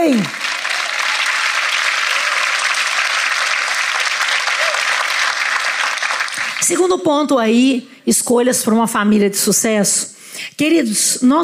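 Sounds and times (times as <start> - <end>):
speech: 0.0 - 0.4, 6.7 - 11.4
loud audience applause: 0.0 - 6.8.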